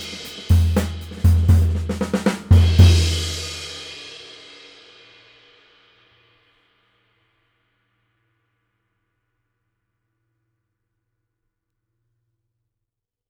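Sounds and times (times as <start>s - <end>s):
22-inch Sabian Artisan cymbal: 0.0s - 8.8s.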